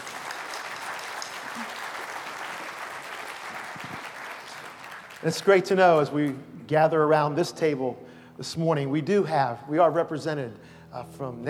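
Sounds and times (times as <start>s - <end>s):
audience applause: 0.0s - 5.7s
speech: 5.2s - 11.4s.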